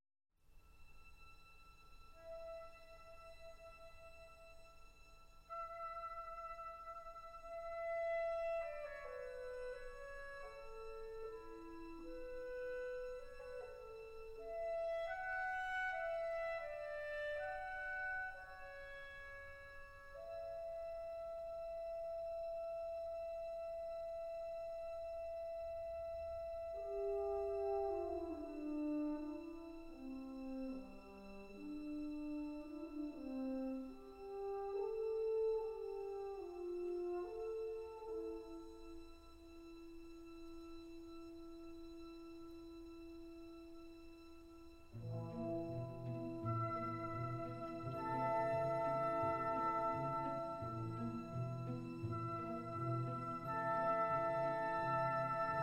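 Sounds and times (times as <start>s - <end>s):
piano: 0.8s - 55.6s.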